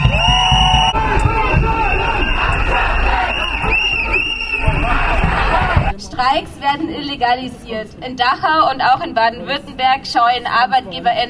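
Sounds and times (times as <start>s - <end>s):
whistles: 0.0s - 4.9s
street demonstration crowd shouting: 0.0s - 6.0s
speech: 6.3s - 11.2s.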